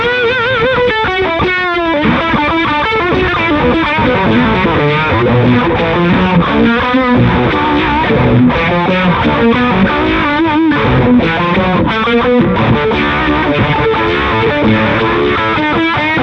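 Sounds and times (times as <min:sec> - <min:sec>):
guitar tone changing from dirt to fuzz: 0:00.0 - 0:16.2.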